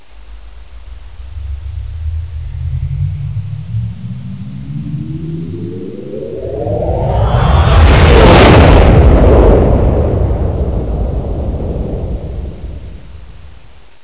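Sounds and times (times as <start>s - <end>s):
warp effect: 0.4s - 10.5s.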